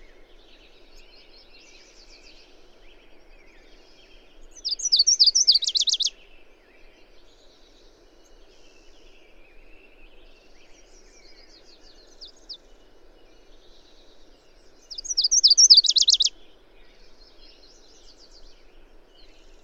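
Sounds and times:
bird song of high chirps ending in a fast trill: 0:04.7 - 0:06.1, 0:14.9 - 0:16.3.

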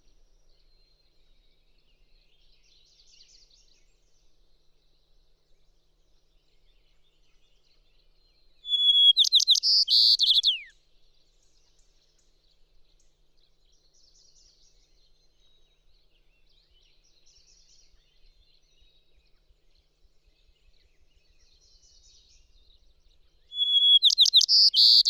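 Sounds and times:
bird song with whistle, chirps, buzzy trills and descending slur: 0:00.0 - 0:25.0.

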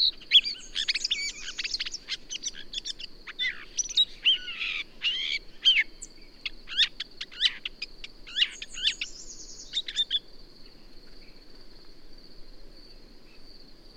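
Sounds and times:
birds singing in chorus: 0:00.0 - 0:11.6.

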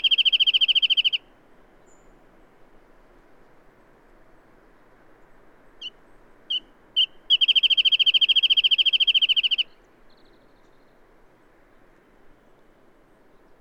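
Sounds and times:
bird singing spaced clear notes and fast steady trill: 0:00.0 - 0:02.1, 0:05.8 - 0:11.0.

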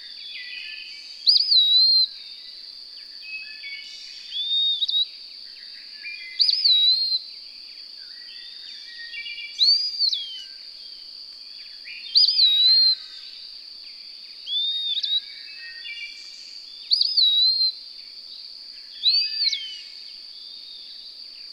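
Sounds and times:
bird song of clear whistled phrases with warbled start and gliding tail: 0:00.0 - 0:02.2, 0:03.2 - 0:07.2, 0:08.0 - 0:11.0, 0:11.6 - 0:13.3, 0:14.4 - 0:17.8, 0:18.9 - 0:21.5.

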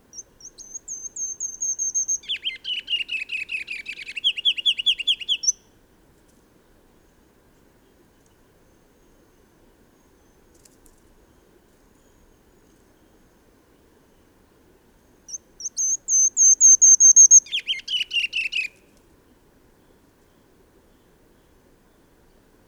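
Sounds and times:
bird singing bright down-slurred chirped notes: 0:00.1 - 0:05.6, 0:15.3 - 0:18.8.

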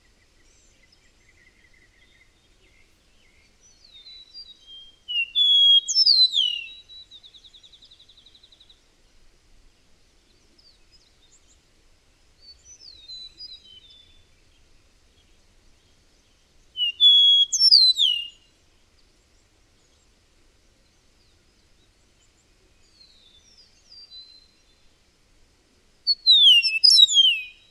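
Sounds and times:
bird song with whistles and trill: 0:00.0 - 0:08.8, 0:12.4 - 0:14.6, 0:16.2 - 0:18.5, 0:22.2 - 0:24.9, 0:26.1 - 0:27.6.

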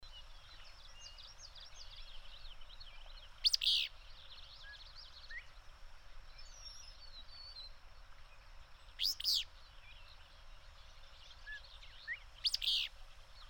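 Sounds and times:
bird song: 0:00.0 - 0:13.4.

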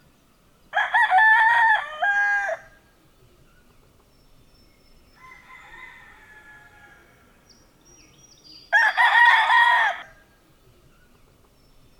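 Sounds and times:
rooster crowing: 0:00.8 - 0:02.8, 0:05.2 - 0:07.4, 0:08.7 - 0:10.2.

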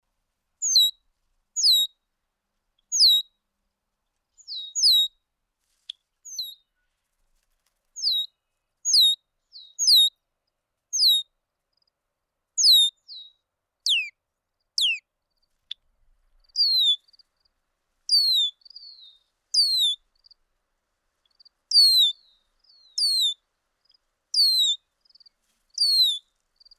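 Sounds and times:
bird song of high descending whistled phrases: 0:00.6 - 0:00.9, 0:01.6 - 0:01.9, 0:02.9 - 0:03.2, 0:04.4 - 0:05.1, 0:06.3 - 0:06.6, 0:08.0 - 0:08.3, 0:08.9 - 0:10.1, 0:11.0 - 0:11.2, 0:12.6 - 0:14.1, 0:14.8 - 0:15.0, 0:16.6 - 0:17.0, 0:18.1 - 0:20.0, 0:21.7 - 0:23.4, 0:24.4 - 0:26.3.

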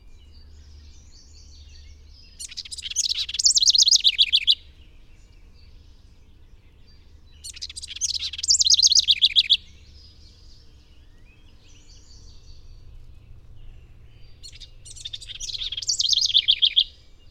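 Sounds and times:
bird song with rapid rattling trills: 0:02.4 - 0:04.6, 0:07.4 - 0:09.6, 0:14.4 - 0:16.8.

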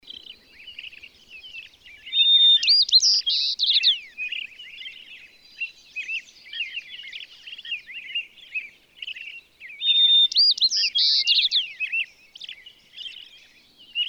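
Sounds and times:
bird song of trills, whistles and twitters: 0:00.0 - 0:14.0.

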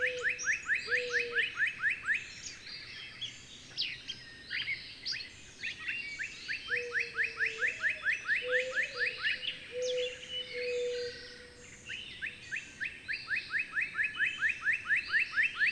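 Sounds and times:
bird chirping: 0:00.0 - 0:15.7.

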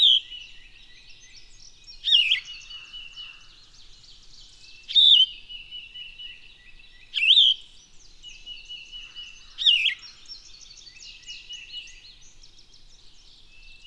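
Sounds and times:
bird song whistled phrases: 0:00.0 - 0:02.8, 0:04.6 - 0:12.3.

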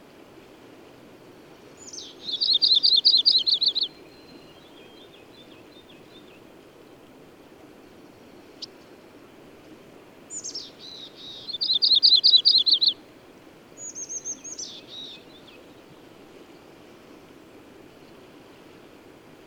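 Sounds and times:
bird song: 0:01.8 - 0:06.4, 0:10.3 - 0:13.0, 0:13.8 - 0:15.9.

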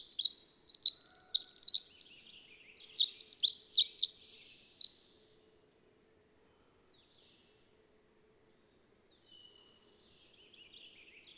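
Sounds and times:
twittering bird song with short trills: 0:00.0 - 0:05.3.

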